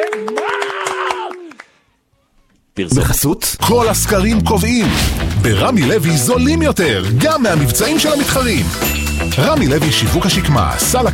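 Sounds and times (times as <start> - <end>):
audience clapping: 0.0 - 1.8
speech: 2.8 - 11.1.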